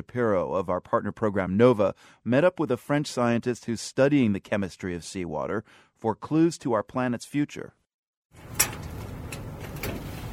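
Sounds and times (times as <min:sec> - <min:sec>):
speech: 0:00.0 - 0:08.4
stuck lock on an outdoor cellar door being tried: 0:08.4 - 0:10.0.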